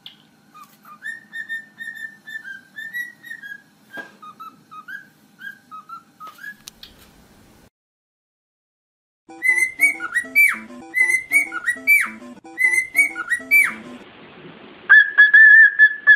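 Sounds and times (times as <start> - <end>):
cockatiel whistling: 0.5 - 6.7, 9.3 - 14.0, 14.9 - 16.1.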